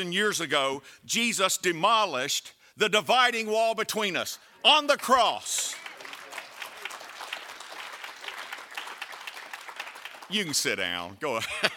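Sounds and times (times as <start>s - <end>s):
speech: 0.0s - 5.8s, 10.3s - 11.7s
audience applauding: 5.4s - 10.9s.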